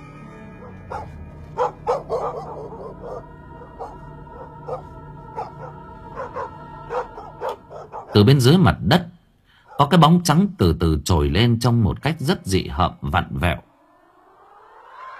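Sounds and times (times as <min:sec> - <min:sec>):
dogs barking loudly: 0:00.6 - 0:08.2, 0:09.6 - 0:10.0
speech: 0:08.2 - 0:09.1, 0:09.8 - 0:13.7.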